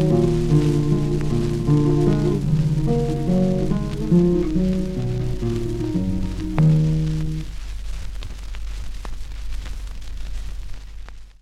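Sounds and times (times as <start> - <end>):
flamenco music on 78rpm record: 0.0 - 7.6.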